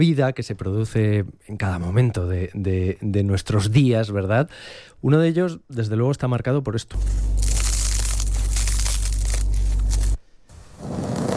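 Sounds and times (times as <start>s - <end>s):
speech: 0.0s - 7.6s
bread crunching as it is cut: 7.3s - 10.2s.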